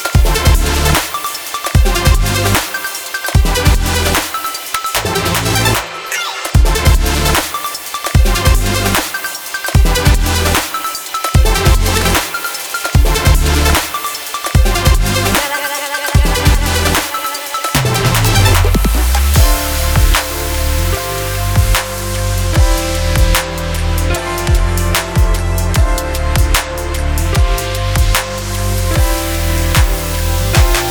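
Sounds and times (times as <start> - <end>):
future bass music: 0.0 - 30.8.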